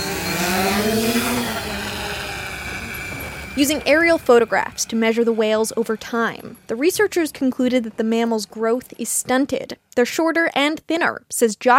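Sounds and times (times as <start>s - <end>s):
drone launching into the air over Cape Cod Bay: 0.0s - 8.3s
speech: 3.6s - 11.7s.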